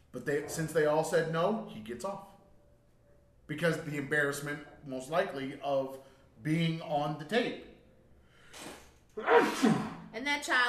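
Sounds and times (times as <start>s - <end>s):
speech: 0.1s - 2.3s, 3.5s - 7.7s, 8.5s - 10.6s
sneeze: 8.5s - 10.1s.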